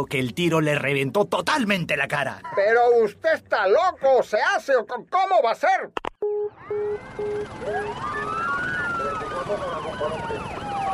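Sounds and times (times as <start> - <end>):
speech: 0.0 - 6.1, 9.5 - 10.5
several police car sirens wailing and yelping: 6.2 - 10.9.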